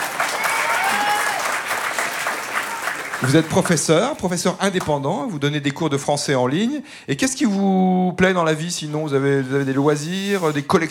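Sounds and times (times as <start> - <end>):
audience clapping: 0.0 - 5.0
speech: 3.2 - 10.8.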